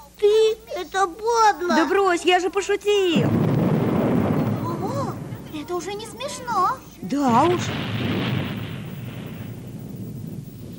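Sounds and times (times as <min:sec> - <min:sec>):
speech: 0:01.0 - 0:03.6, 0:05.7 - 0:08.1
thunder as rain begins: 0:03.2 - 0:10.7.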